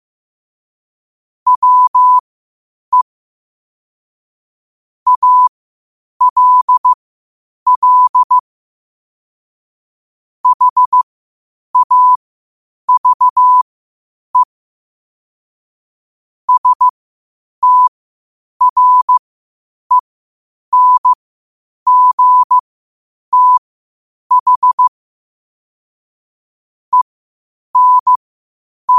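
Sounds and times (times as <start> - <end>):
morse code at 5 wpm: 1.5 - 2.2, 5.1 - 5.5, 6.2 - 7.0, 7.7 - 8.4, 10.4 - 11.0, 11.8 - 12.2, 12.9 - 13.6, 16.5 - 16.9, 17.6 - 17.9, 18.6 - 19.2, 20.7 - 21.2, 21.9 - 22.6, 23.3 - 23.6, 24.3 - 24.9, 27.8 - 28.2.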